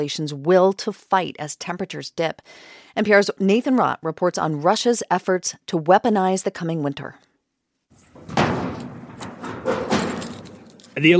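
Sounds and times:
speech: 0.0s - 7.3s, 11.0s - 11.1s
gashed heavy metal door creaking and scraping open: 8.0s - 11.1s.

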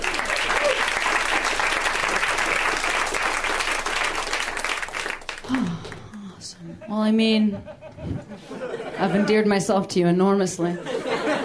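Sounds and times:
audience applause at a live show: 0.0s - 6.2s
laughter: 6.5s - 9.6s, 10.7s - 11.4s
speech: 7.1s - 11.0s.

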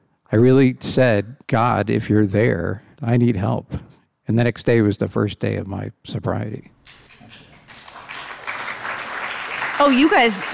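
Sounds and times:
speech: 0.3s - 7.4s, 9.8s - 10.5s
crowd applause: 6.9s - 10.5s.

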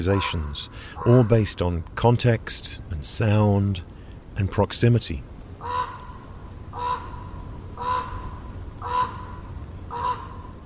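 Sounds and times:
raven croaking: 0.0s - 1.7s, 5.6s - 10.6s
speech: 0.0s - 5.3s.

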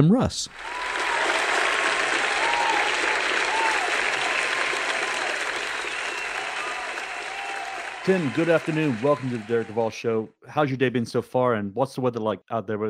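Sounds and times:
speech: 0.0s - 1.0s, 8.0s - 12.8s
studio audience applause welcoming an actor guest onto a show: 0.5s - 9.9s.

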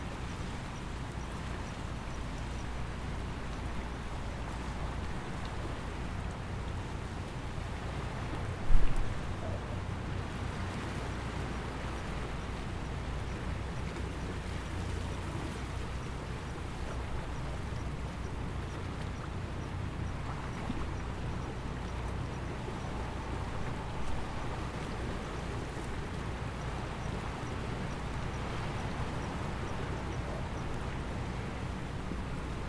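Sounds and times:
waves on the shore of Cavello Bay, Bermuda: 0.0s - 32.6s.

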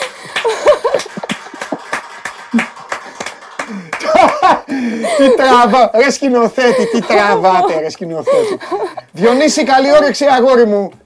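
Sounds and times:
hand clapping: 0.0s - 4.7s
laughter: 0.4s - 1.9s, 4.0s - 5.8s, 6.6s - 9.6s
lively voices: 4.7s - 10.9s
speech: 4.8s - 11.0s.

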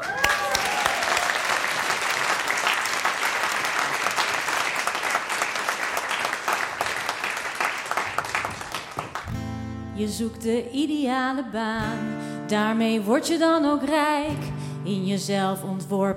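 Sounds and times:
audience applause: 0.0s - 9.4s
speech: 10.0s - 16.1s.

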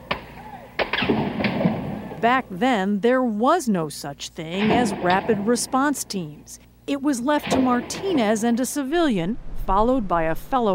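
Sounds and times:
sharp booming gunshots: 0.8s - 2.2s, 4.6s - 5.8s, 7.4s - 8.4s
speech: 2.2s - 10.7s.

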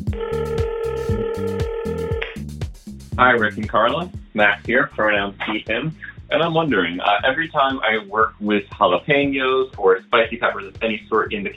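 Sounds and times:
speech: 0.1s - 0.4s, 3.2s - 11.5s
electronic telephone ringing effect announcing a caller: 0.2s - 2.2s.

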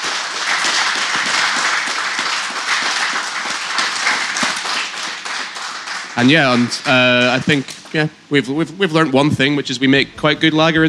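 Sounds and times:
audience applause: 0.0s - 8.1s
speech: 6.2s - 10.8s.

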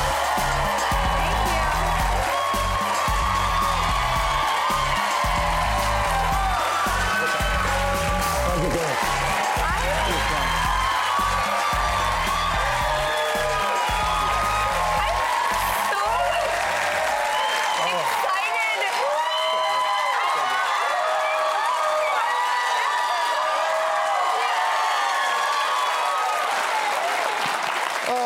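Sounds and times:
band playing: 0.0s - 16.1s
studio audience clapping: 0.0s - 28.2s.

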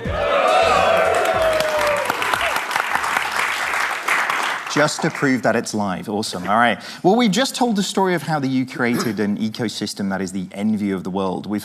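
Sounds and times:
cinema audience clapping and cheering at a film premiere at the Barbican: 0.0s - 5.6s
speech: 4.8s - 11.6s.

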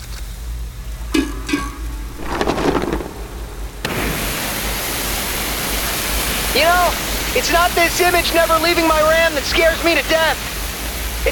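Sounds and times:
rumbling splashy bursts: 2.2s - 11.2s
water hose spraying down a corridor: 2.2s - 11.2s
speech: 6.6s - 10.5s.

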